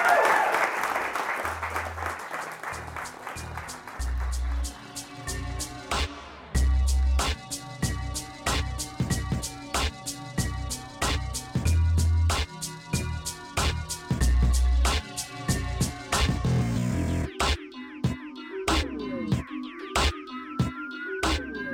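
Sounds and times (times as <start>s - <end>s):
audience round of applause: 0.0s - 5.0s
music with a steady drumbeat and deep bass notes: 2.8s - 21.6s.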